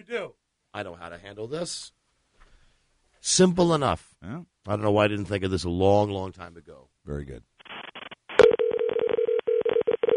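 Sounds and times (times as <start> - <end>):
speech: 0.0 - 2.0, 3.2 - 7.8
telephone ringing with a buzzing electronic tone: 8.4 - 10.1.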